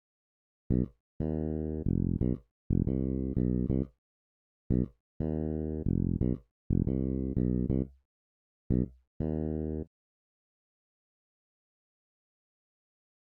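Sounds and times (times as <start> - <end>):
blues music: 0.7 - 3.9, 4.7 - 7.8.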